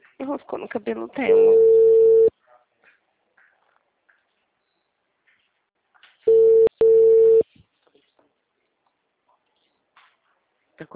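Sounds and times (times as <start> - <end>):
speech: 0.2 - 1.9
telephone call tone before voicemail: 1.3 - 2.3, 6.3 - 7.4.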